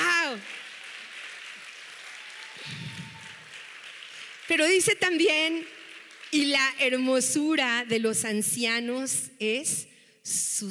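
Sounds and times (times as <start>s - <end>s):
audience applause: 0.0s - 6.6s
speech: 4.5s - 10.6s.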